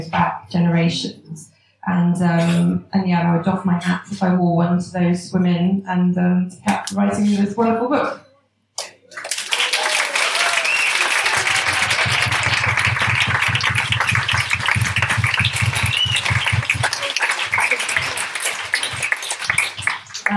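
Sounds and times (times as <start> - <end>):
speech: 0.0 - 8.2
audience applause: 9.1 - 20.3.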